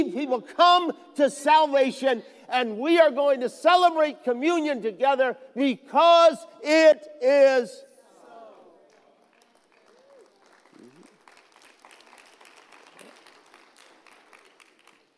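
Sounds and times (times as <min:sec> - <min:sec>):
speech: 0:00.0 - 0:07.9
quiet polite golf claps from a church congregation: 0:08.8 - 0:15.1.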